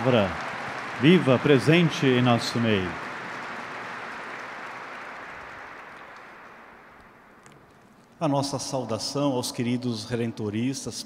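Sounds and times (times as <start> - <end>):
speech: 0.0 - 0.4, 1.0 - 3.0, 8.2 - 11.0
audience applause: 0.0 - 7.6.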